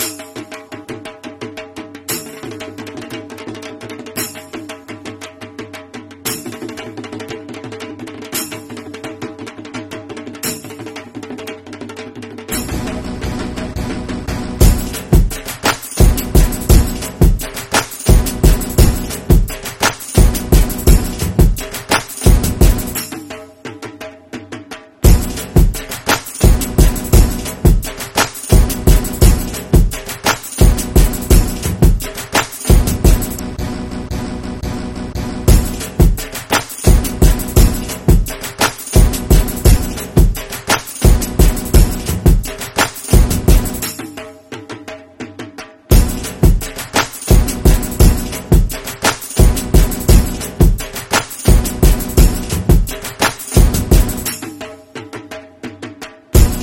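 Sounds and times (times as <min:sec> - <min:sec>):
garba dance music: 0:12.5 - 0:24.0, 0:25.0 - 0:56.6.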